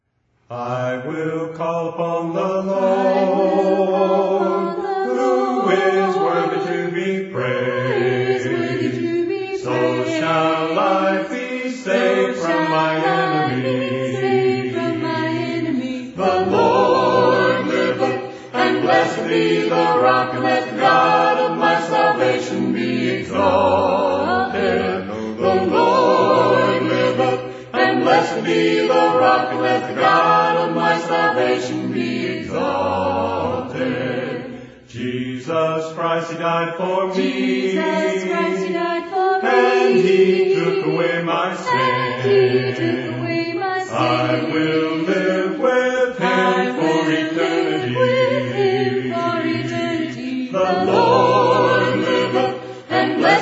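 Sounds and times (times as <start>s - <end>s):
a cappella hymn: 0.4s - 53.4s.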